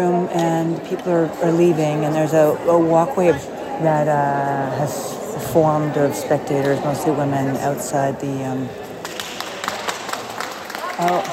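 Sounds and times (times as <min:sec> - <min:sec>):
speech: 0:00.0 - 0:08.8
crowd applauding: 0:09.0 - 0:11.3.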